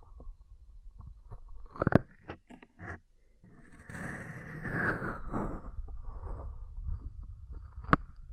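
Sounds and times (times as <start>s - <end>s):
ear cleaning rubbing and scraping: 1.8s - 8.1s.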